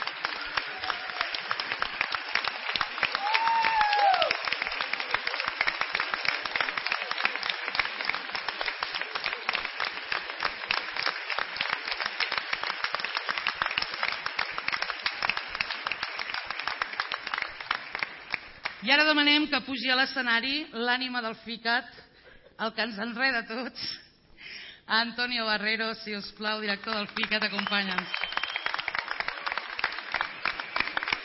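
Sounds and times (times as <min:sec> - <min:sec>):
crowd applauding: 0:00.0 - 0:18.8, 0:27.1 - 0:31.2
rising whistle or cheer: 0:03.2 - 0:04.4, 0:27.9 - 0:29.0
speech: 0:18.9 - 0:22.0, 0:22.6 - 0:24.0, 0:24.9 - 0:28.2.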